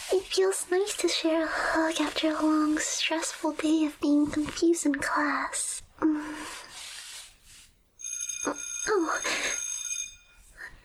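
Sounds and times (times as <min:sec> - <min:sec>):
speech: 0:00.3 - 0:06.5
school bell ringing: 0:08.0 - 0:10.5.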